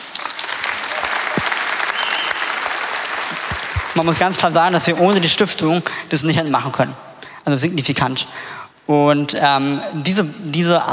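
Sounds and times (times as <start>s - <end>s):
audience applause: 0.0s - 4.8s
speech: 4.0s - 10.9s.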